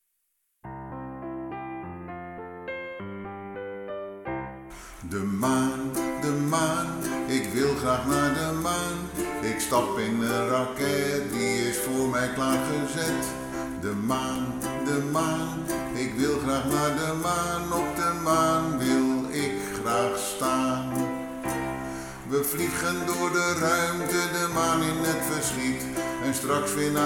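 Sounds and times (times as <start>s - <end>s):
person singing: 4.7s - 27.0s.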